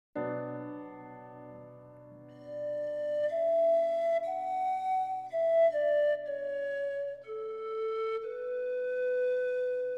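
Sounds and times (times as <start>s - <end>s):
adagio sonatina pan flute music: 2.3s - 9.9s.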